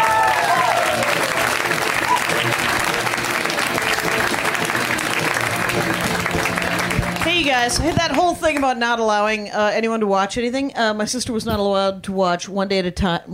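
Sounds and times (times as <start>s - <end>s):
crowd audience applause: 0.0s - 8.7s
speech: 7.6s - 13.3s.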